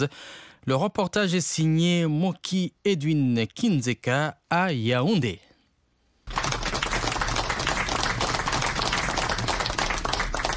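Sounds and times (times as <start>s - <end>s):
speech: 0.0s - 5.5s
crowd applauding an arrival: 6.3s - 10.5s.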